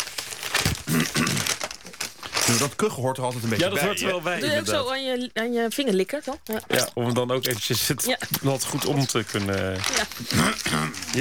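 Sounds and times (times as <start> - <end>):
newspaper pages leafed through: 0.0 - 3.9, 8.4 - 11.1
speech: 2.5 - 11.1.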